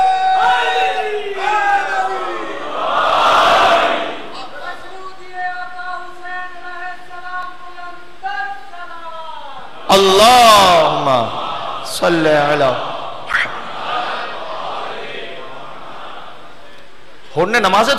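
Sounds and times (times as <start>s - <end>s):
crowd shouting a religious slogan: 0.0s - 4.8s, 9.7s - 16.6s
speech: 12.0s - 12.9s, 17.4s - 17.9s.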